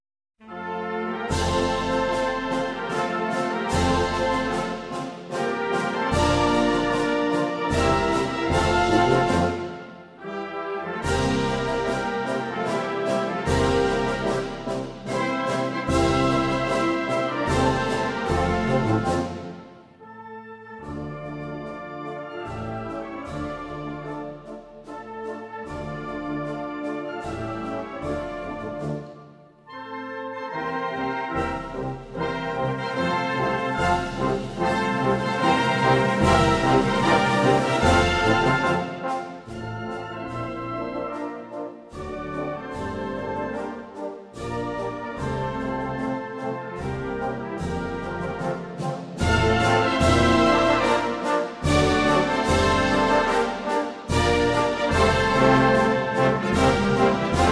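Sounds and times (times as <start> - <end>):
national anthem: 0.4 - 57.5.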